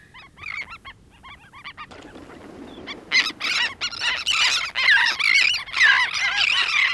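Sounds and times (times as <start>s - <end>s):
royal tern feeding group calling: 1.8s - 6.9s.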